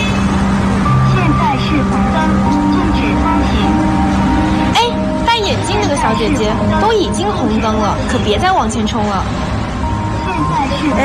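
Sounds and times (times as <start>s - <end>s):
car horns honking at a busy intersection: 0.0s - 11.0s
dense street traffic rumbling: 0.0s - 11.0s
speech: 6.2s - 9.6s, 10.4s - 11.0s.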